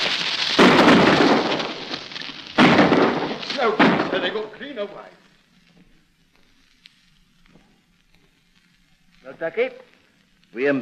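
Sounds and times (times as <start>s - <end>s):
gunfire in a radio drama as soldiers fire on escaping convicts: 0.6s - 1.9s, 2.5s - 4.5s
speech: 3.6s - 5.2s, 9.2s - 9.9s, 10.5s - 10.8s.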